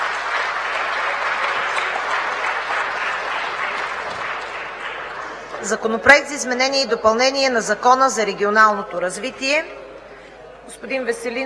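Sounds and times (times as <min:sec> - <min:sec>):
applause in parliament: 0:00.0 - 0:06.3
speech: 0:05.6 - 0:09.8, 0:10.8 - 0:11.4.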